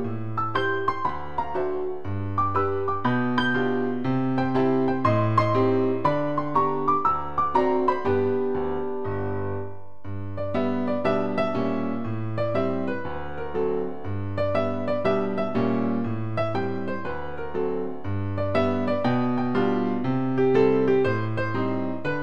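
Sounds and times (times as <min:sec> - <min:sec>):
slow foxtrot music: 0:00.0 - 0:22.2.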